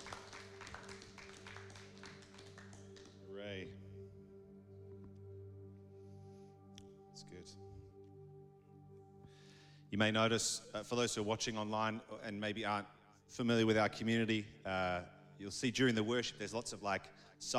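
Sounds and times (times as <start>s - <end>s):
small audience clapping: 0.0s - 3.3s
speech: 3.4s - 3.8s, 7.2s - 8.0s, 9.9s - 17.5s.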